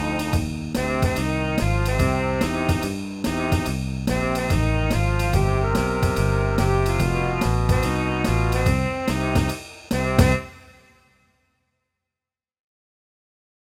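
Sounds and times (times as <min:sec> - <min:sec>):
band playing with all instruments: 0:00.0 - 0:10.9.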